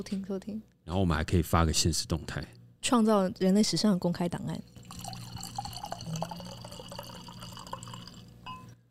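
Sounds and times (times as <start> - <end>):
speech: 0.0 - 4.8
liquor pouring into a glass: 4.7 - 8.6.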